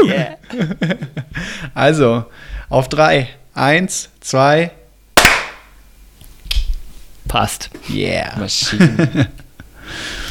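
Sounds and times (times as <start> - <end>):
speech: 0.0 - 1.2, 1.8 - 4.8, 7.3 - 10.2
group clapping once in unison: 5.2 - 5.6
laughter: 8.6 - 9.5.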